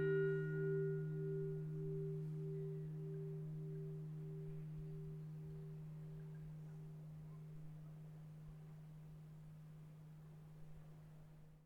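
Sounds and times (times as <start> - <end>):
Tarifa church bells: 0.0 - 9.0.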